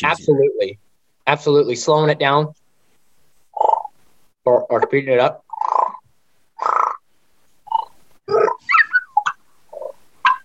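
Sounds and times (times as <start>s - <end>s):
speech: 0.0s - 2.6s, 4.4s - 5.4s
voice imitating animal calls and whine call: 4.6s - 6.0s, 6.6s - 7.0s, 7.7s - 10.4s.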